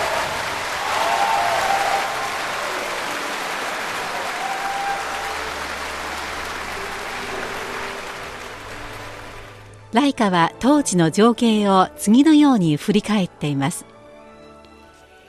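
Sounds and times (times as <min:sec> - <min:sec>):
enthusiastic theatre audience applause in a theatre hall: 0:00.0 - 0:09.7
speech: 0:09.9 - 0:13.9.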